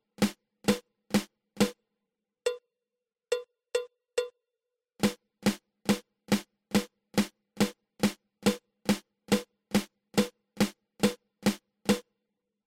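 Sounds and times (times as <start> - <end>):
drum flam: 0.1 - 1.8, 5.0 - 12.0.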